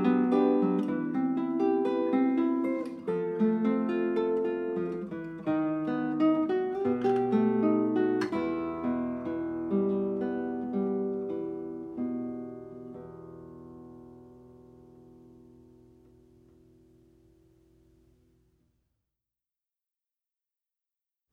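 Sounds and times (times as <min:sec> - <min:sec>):
South American guitar piece: 0:00.0 - 0:18.7.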